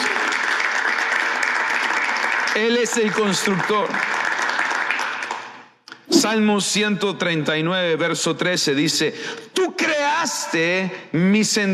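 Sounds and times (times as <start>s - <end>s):
audience applause: 0.0s - 5.6s
speech: 2.6s - 4.2s, 6.3s - 11.7s.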